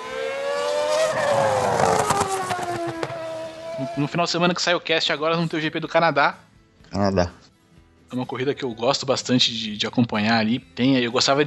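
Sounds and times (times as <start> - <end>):
Formula 1 race car engine screaming: 0.0 - 4.2
speech: 4.0 - 7.4, 8.1 - 11.4.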